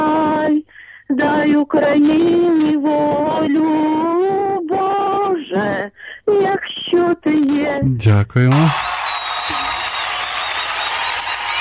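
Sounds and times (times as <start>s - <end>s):
speech: 1.1s - 8.9s
audience applause after a song: 8.5s - 11.6s.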